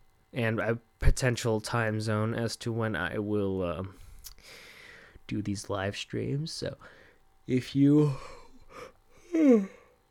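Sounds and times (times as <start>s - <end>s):
speech: 0.3s - 4.6s, 5.3s - 9.8s
person yawning: 8.1s - 10.0s.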